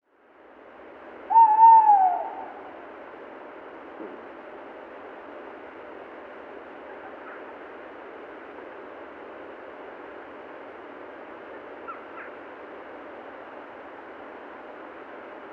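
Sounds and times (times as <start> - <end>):
Tawny owl (Strix aluco) hooting: 1.3 - 2.9.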